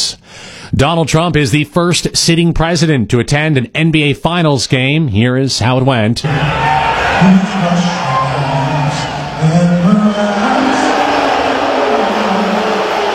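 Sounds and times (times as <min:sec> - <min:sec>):
speech: 0:00.1 - 0:08.2
crowd booing in arena: 0:06.2 - 0:13.1.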